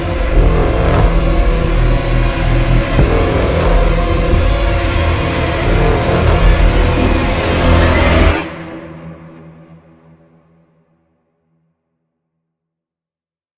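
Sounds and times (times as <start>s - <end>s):
epic hybrid horror music: 0.0s - 10.7s.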